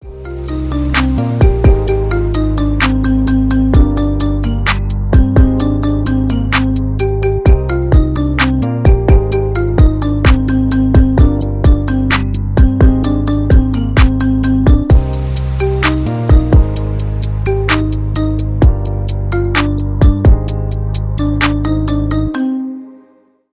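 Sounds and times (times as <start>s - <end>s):
marimba remix: 0.0s - 22.9s.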